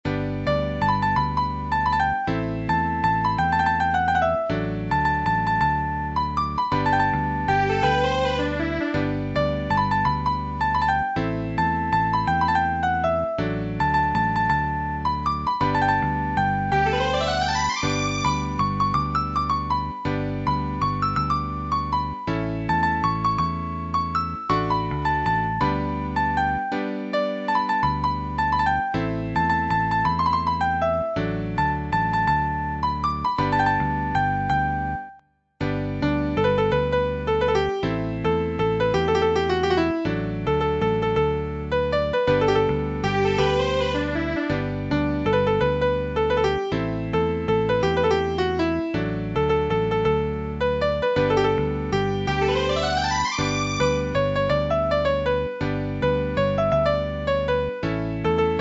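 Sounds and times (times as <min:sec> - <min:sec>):
piano: 0:00.0 - 0:58.5.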